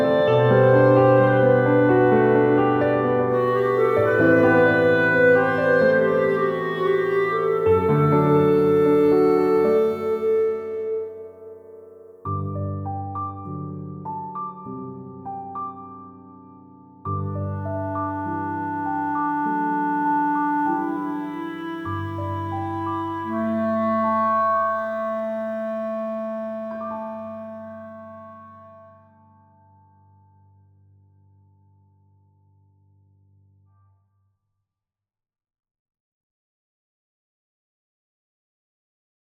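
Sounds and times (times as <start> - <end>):
clarinet in B flat: 0.0 - 12.6, 17.2 - 29.9
piano: 0.0 - 33.9.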